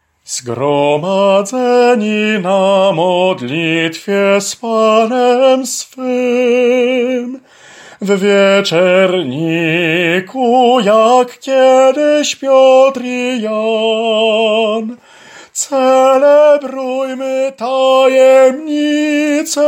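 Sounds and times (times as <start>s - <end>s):
tenor singing: 0.3s - 7.4s, 8.0s - 19.6s.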